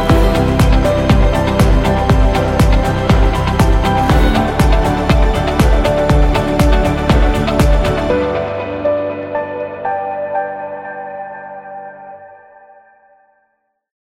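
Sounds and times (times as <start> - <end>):
upbeat music: 0.0 - 9.4.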